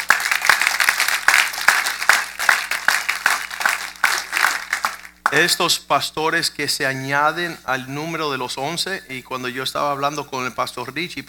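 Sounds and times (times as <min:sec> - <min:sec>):
audience applause: 0:00.0 - 0:05.4
speech: 0:05.3 - 0:11.2.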